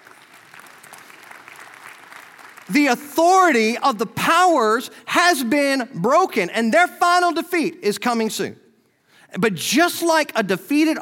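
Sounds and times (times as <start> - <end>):
audience clapping: 0.0 - 3.1
speech: 2.7 - 8.6, 9.3 - 11.0.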